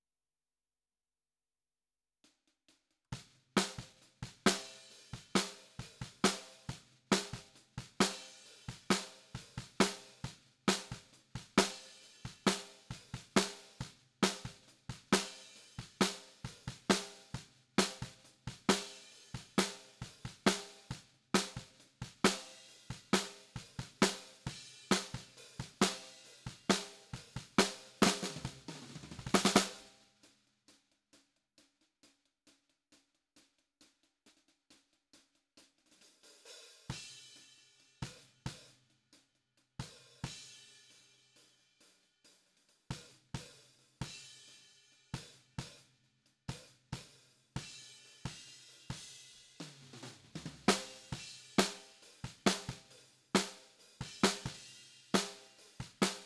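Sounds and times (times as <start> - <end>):
snare drum: 3.1 - 30.0, 46.5 - 56.2.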